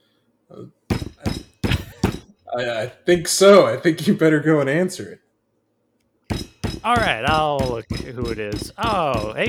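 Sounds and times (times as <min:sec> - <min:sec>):
speech: 0:00.5 - 0:00.8, 0:02.6 - 0:05.2, 0:06.8 - 0:09.4
knocking on a cabin door: 0:00.9 - 0:02.3, 0:06.3 - 0:09.4.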